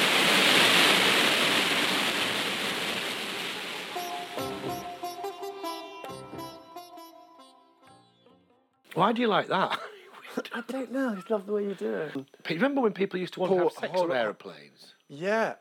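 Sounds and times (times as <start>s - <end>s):
rocket engine roar at liftoff: 0.0s - 4.8s
laughter: 9.0s - 12.2s, 13.4s - 14.2s
speech: 9.0s - 15.6s.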